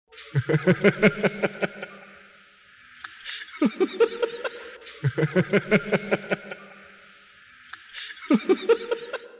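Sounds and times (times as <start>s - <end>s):
person laughing: 0.2s - 2.0s, 3.4s - 6.8s, 8.1s - 9.2s.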